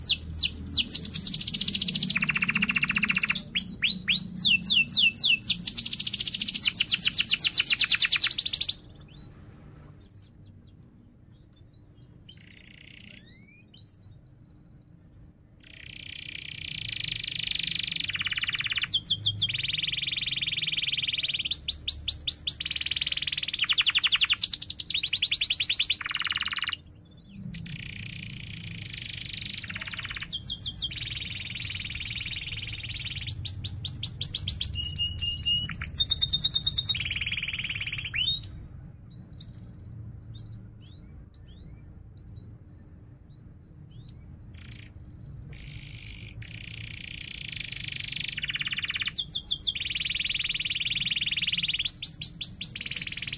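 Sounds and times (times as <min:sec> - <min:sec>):
canary singing: 0:00.0 - 0:53.3.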